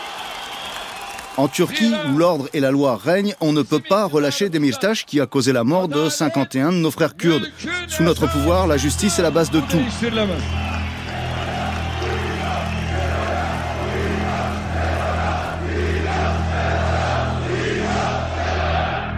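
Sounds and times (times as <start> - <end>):
speech: 1.4 - 10.8
rumbling crowd chanting: 7.8 - 19.1.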